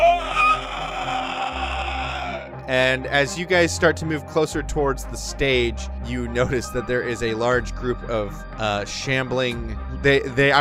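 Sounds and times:
voice imitating a shrieking warbling roar: 0:00.0 - 0:02.6
speech: 0:02.7 - 0:10.5.

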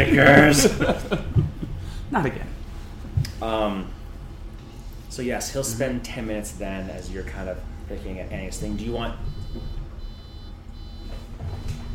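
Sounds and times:
speech: 0:00.0 - 0:01.3, 0:02.1 - 0:02.5, 0:03.4 - 0:04.0, 0:05.2 - 0:09.8
laughter: 0:00.0 - 0:02.0
low steady rumbling background: 0:00.0 - 0:11.9
fridge door-open alarm beeping: 0:09.2 - 0:11.9.

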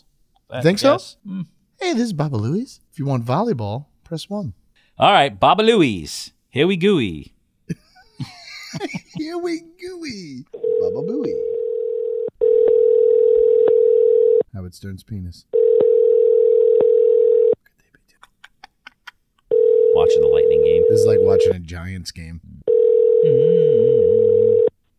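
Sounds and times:
speech: 0:00.5 - 0:11.5, 0:14.6 - 0:15.6, 0:20.0 - 0:22.5, 0:23.2 - 0:23.8
laughter: 0:07.7 - 0:10.2, 0:18.0 - 0:19.2
telephone line ringing tone: 0:10.6 - 0:14.4, 0:15.6 - 0:17.6, 0:19.5 - 0:21.5, 0:22.7 - 0:24.7.

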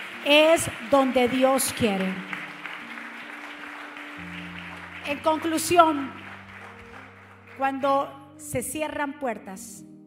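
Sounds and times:
audience applause: 0:00.0 - 0:07.9
speech: 0:00.2 - 0:02.4, 0:05.1 - 0:06.2, 0:07.6 - 0:09.9.

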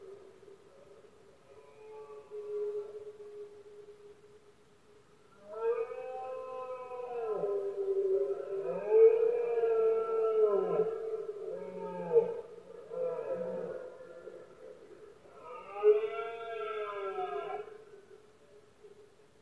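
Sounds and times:
red deer roaring: 0:05.5 - 0:14.5, 0:15.3 - 0:17.8.

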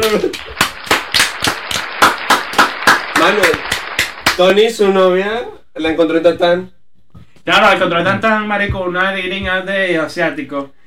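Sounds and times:
speech: 0:00.0 - 0:00.6, 0:04.4 - 0:06.8, 0:07.4 - 0:10.8
few people clapping: 0:00.0 - 0:04.7.

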